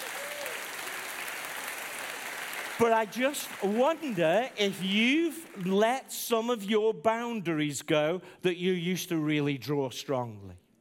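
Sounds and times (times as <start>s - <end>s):
audience hand clapping: 0.0s - 6.7s
speech: 2.8s - 10.6s.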